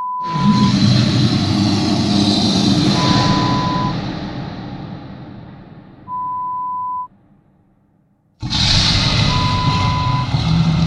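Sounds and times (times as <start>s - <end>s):
beast horror sound effect: 0.2s - 6.1s, 8.4s - 10.8s.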